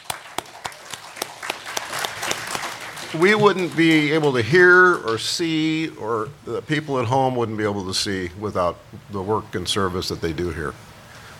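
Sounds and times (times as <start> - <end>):
audience applause: 0.0 - 4.7
speech: 3.1 - 10.8.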